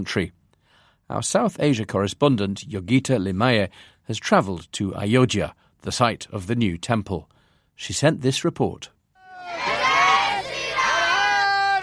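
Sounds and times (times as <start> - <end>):
speech: 0.0 - 0.4, 1.1 - 9.8
group of young people chanting a slogan: 9.2 - 11.8.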